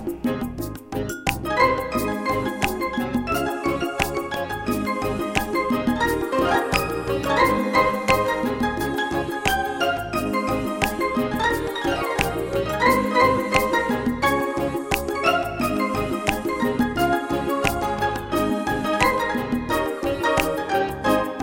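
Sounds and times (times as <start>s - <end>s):
lazy reggae music: 0.0s - 21.4s.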